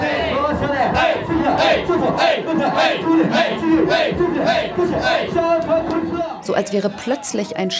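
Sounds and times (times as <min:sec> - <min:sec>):
group of men chanting a host club champagne call: 0:00.0 - 0:06.4
speech: 0:01.7 - 0:07.7.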